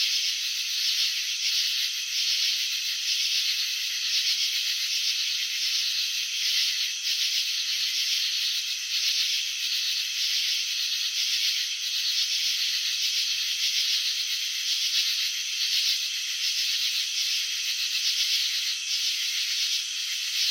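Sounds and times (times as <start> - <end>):
cricket chirping: 0.0 - 20.4.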